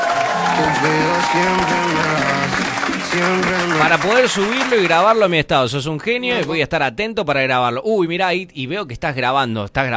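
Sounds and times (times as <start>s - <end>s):
applause: 0.0s - 5.4s
speech: 0.6s - 9.9s.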